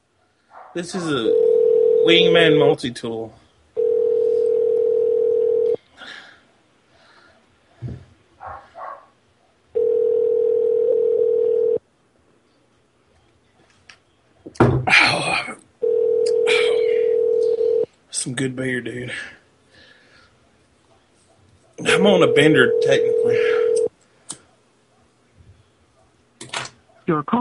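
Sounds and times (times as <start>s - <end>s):
speech: 0.7s - 3.4s, 18.4s - 19.4s, 22.0s - 23.6s, 27.1s - 27.3s
telephone dial tone and ringing: 1.3s - 2.4s, 3.8s - 5.8s, 9.8s - 11.8s, 15.8s - 17.9s, 22.0s - 23.9s.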